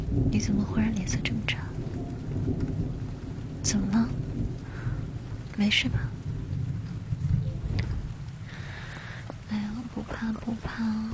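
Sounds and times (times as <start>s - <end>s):
thunder: 0.0s - 8.8s
speech: 0.4s - 3.0s, 3.6s - 4.3s, 5.6s - 6.2s, 10.2s - 11.1s.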